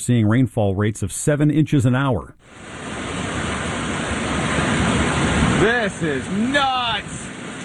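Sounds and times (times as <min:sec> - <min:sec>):
speech: 0:00.0 - 0:02.9, 0:05.6 - 0:07.2
howling storm wind roaring: 0:02.5 - 0:07.6.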